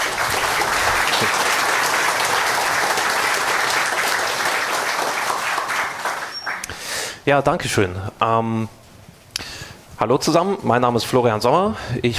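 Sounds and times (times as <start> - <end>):
audience applause: 0.0 - 6.8
speech: 7.3 - 8.8, 10.0 - 12.1.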